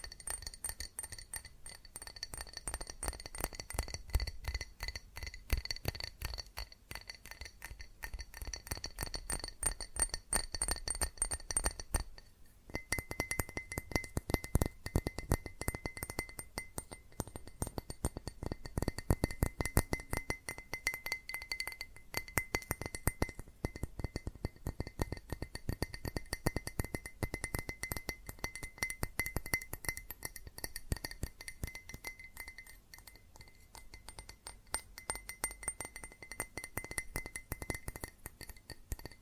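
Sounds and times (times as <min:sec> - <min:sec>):
fast tapping on glass and ceramic objects: 0:00.0 - 0:39.1.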